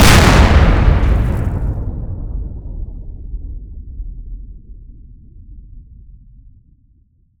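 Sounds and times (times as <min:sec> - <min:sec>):
explosion: 0:00.0 - 0:03.6.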